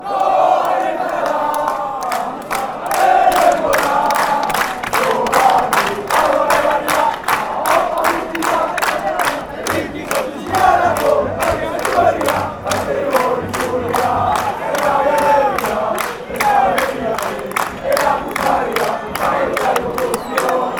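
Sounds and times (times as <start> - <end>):
football crowd chanting: 0.0 - 20.7.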